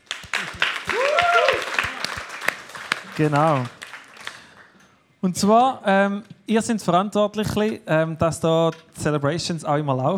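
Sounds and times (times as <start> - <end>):
audience applause: 0.0 - 4.8
speech: 3.2 - 3.8, 5.2 - 10.1.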